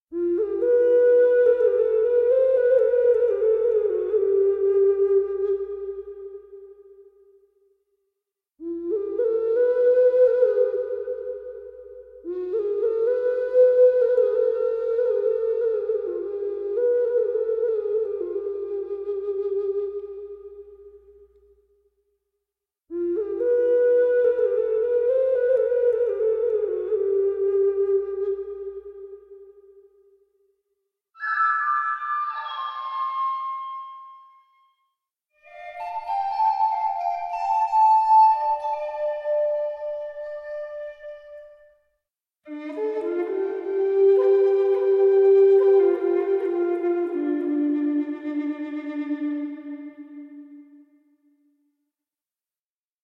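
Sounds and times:
flutes: 0:00.1 - 0:07.4, 0:08.6 - 0:21.6, 0:22.9 - 0:30.2, 0:31.2 - 0:51.4.

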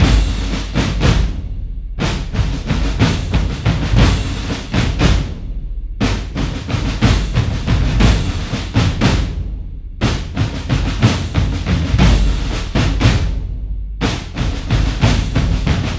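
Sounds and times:
drums: 0:00.0 - 0:15.9.

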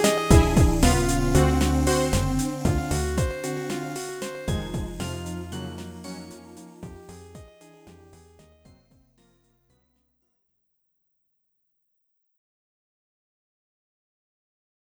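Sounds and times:
tension music: 0:00.0 - 0:07.4.

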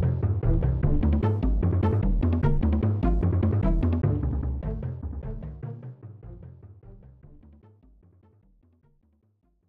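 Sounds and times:
jungle rhythm music: 0:00.0 - 0:05.8.

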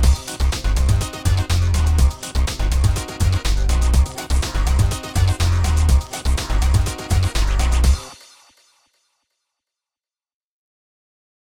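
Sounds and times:
beatbox-style instrumental: 0:00.0 - 0:08.3.

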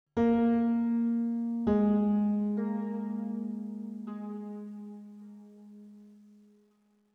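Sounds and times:
piano one shot: 0:00.2 - 0:06.7.

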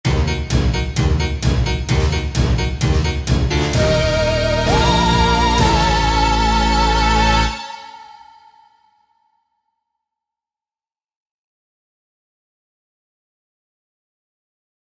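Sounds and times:
spooky opening music: 0:00.1 - 0:08.7.

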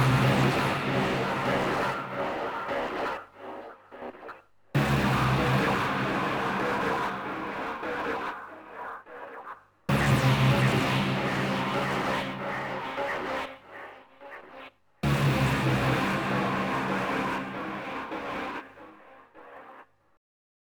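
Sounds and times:
fight drone: 0:00.0 - 0:03.6, 0:04.8 - 0:08.3, 0:09.9 - 0:13.6, 0:15.0 - 0:18.6.

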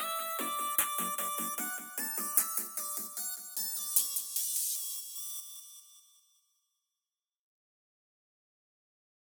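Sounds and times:
soft instrumental music: 0:00.0 - 0:05.1.

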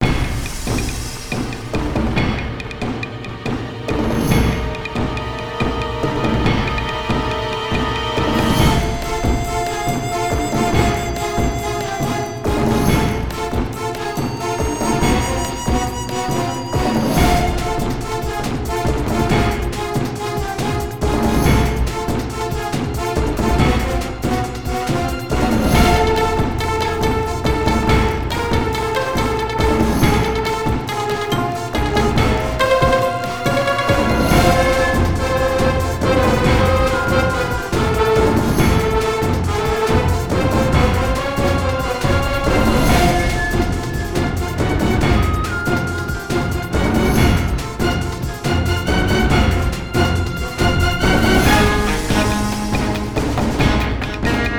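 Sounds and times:
intense Asian-style music: 0:00.0 - 0:54.5.

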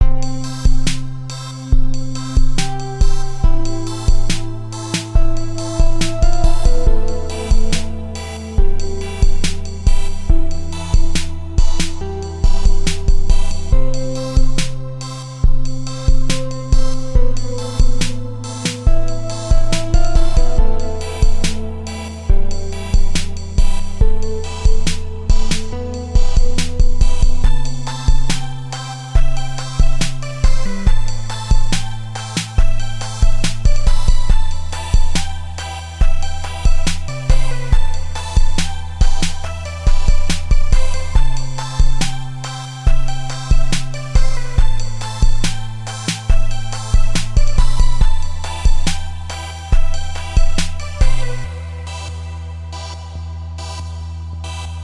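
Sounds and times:
electronic music: 0:00.0 - 0:54.8.

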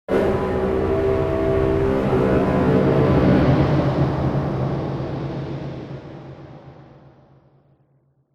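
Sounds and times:
music stinger: 0:00.1 - 0:06.2.

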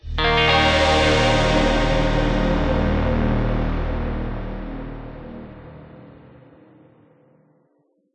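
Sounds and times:
neutral music stinger: 0:00.2 - 0:06.4.

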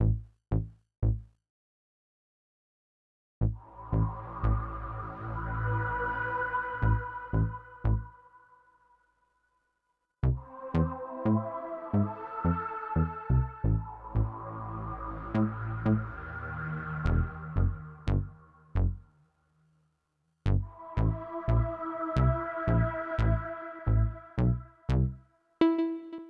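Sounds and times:
ambient synth music: 0:03.5 - 0:08.4, 0:10.3 - 0:19.4, 0:20.6 - 0:26.2.

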